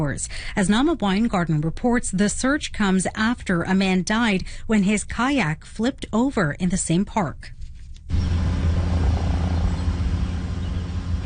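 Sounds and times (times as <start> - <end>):
speech: 0.0 - 8.3
police helicopter droning overhead: 8.1 - 11.2.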